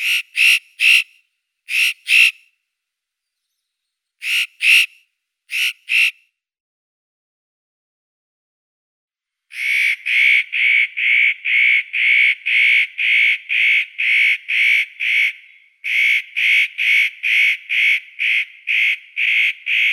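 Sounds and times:
nutcracker Nucifraga caryocatactes calling: 0.0 - 2.4, 4.2 - 6.2, 9.5 - 19.9.

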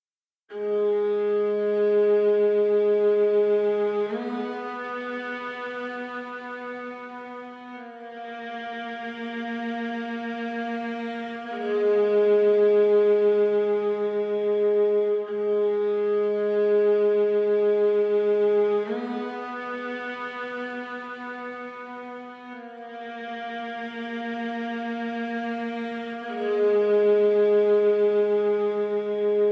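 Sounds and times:
solo viola: 0.5 - 29.4.

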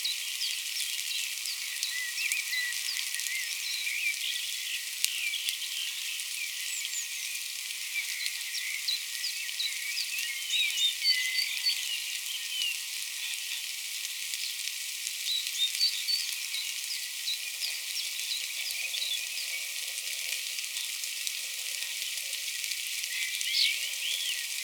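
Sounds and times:
light rain in a forest: 0.0 - 24.6.

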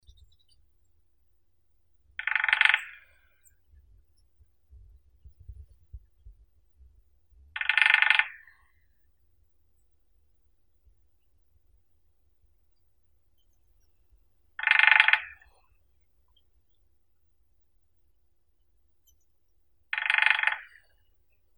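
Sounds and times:
lesser spotted woodpecker Dendrocopos minor: 2.2 - 3.6, 7.6 - 8.6, 14.6 - 15.6, 20.0 - 20.9.

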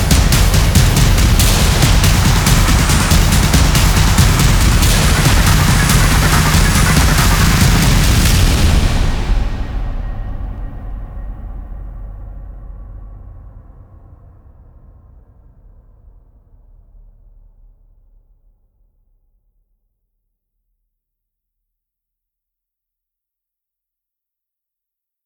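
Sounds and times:
percussion: 0.0 - 12.3.

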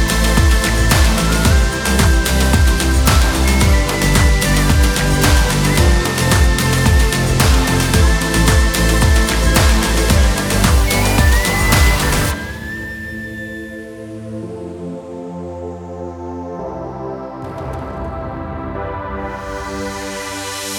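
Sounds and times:
karaoke backing track: 0.0 - 12.4.

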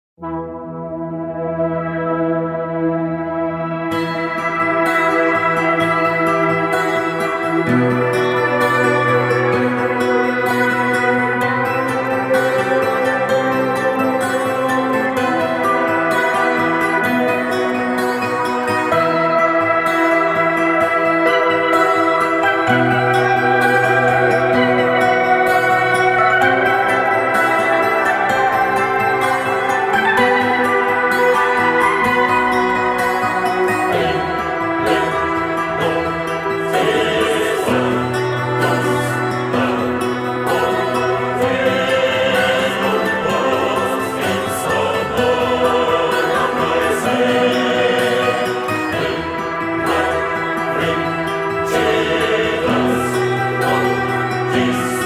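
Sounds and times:
acoustic music: 0.2 - 55.0.

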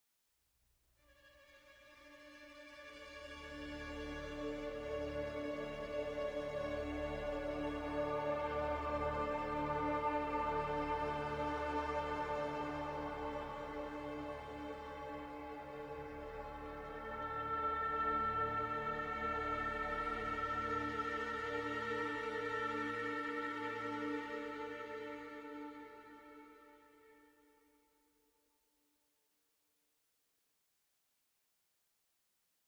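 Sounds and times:
ambient music: 3.2 - 27.1.

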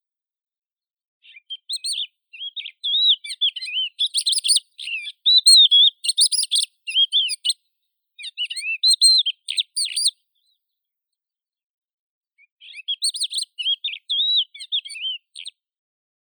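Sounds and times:
crested lark Galerida cristata: 1.2 - 7.6, 8.2 - 10.6, 12.5 - 15.6.

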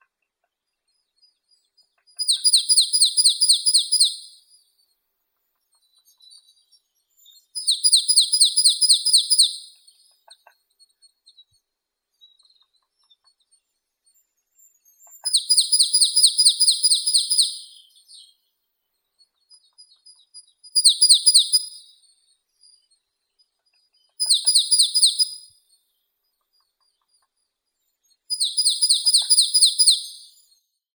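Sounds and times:
marsh tit Poecile palustris: 2.2 - 4.4, 7.6 - 9.8, 15.2 - 17.9, 20.8 - 21.9, 24.2 - 25.5, 28.3 - 30.4.

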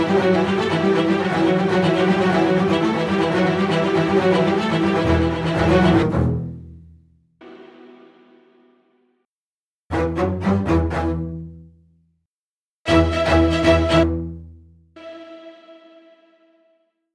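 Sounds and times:
strings: 0.0 - 6.8, 9.9 - 11.7, 12.9 - 16.8.

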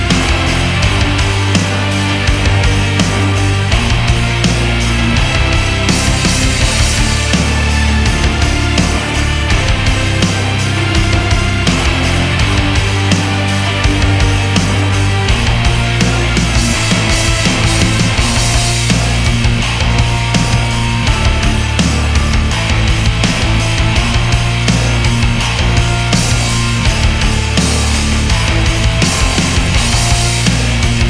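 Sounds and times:
instrumental music: 0.0 - 31.0.

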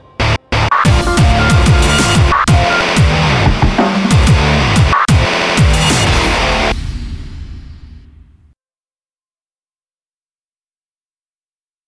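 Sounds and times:
instrumental music: 0.0 - 6.7.

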